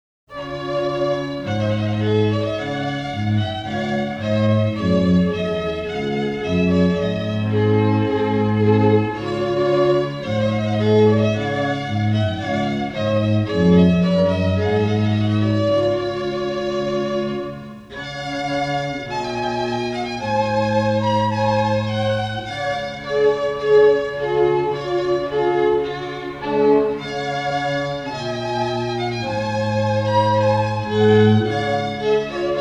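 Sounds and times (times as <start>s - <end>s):
strings: 0.3s - 32.5s.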